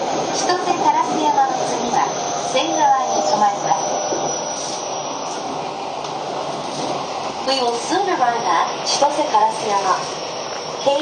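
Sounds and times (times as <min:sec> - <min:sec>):
Keio 5000 series commuter train running: 0:00.0 - 0:11.0
speech: 0:07.5 - 0:10.2, 0:10.8 - 0:11.0.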